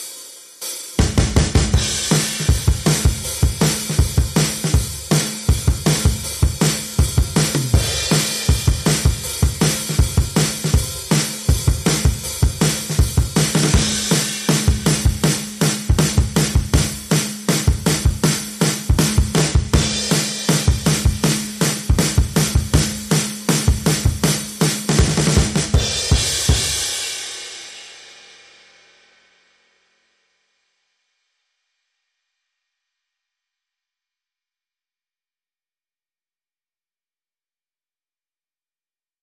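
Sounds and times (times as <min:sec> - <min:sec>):
drums: 0:00.0 - 0:30.2.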